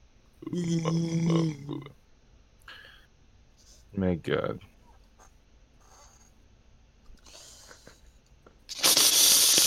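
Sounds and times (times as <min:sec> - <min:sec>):
speech: 0:00.5 - 0:01.9, 0:04.0 - 0:04.7
slurping ramen noodles: 0:08.7 - 0:09.6.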